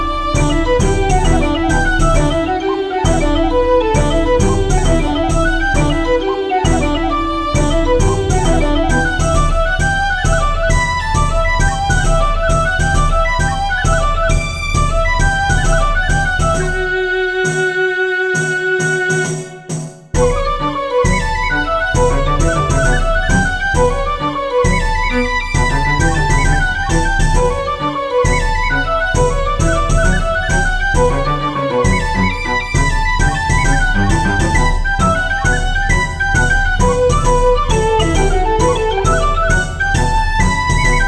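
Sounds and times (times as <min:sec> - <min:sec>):
Irish tin whistle: 0:00.0 - 0:41.0.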